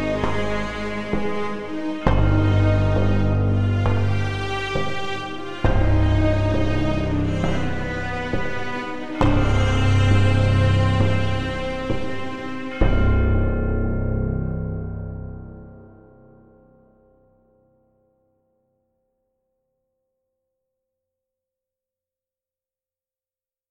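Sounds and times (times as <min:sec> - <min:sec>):
dark electronic music: 0:00.0 - 0:15.8.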